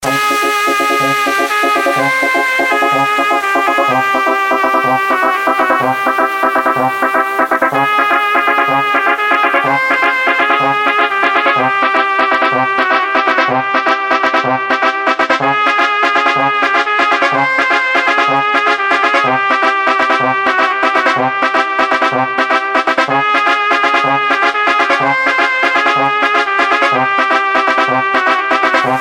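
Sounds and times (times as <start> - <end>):
Mexican electro music: 0.0 - 29.0.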